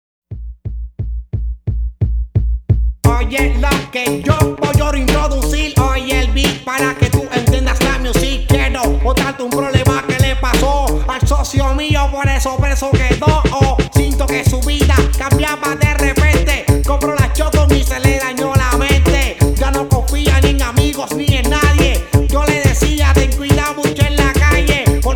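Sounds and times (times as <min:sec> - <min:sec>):
beat: 0:00.3 - 0:25.1.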